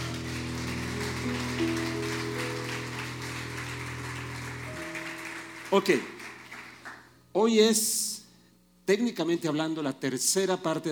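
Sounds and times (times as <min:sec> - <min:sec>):
audience applause: 0:00.0 - 0:07.2
speech: 0:05.7 - 0:06.2, 0:07.4 - 0:08.2, 0:08.9 - 0:10.9.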